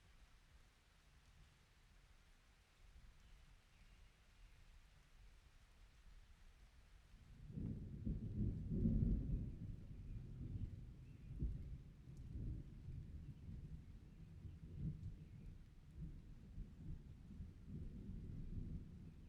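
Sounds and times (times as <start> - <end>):
summer rain: 0.0 - 19.2
summer thunder: 7.5 - 10.8.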